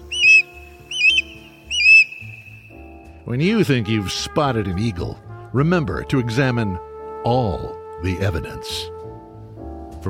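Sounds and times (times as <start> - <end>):
osprey call: 0.0 - 2.8
speech: 3.3 - 8.9.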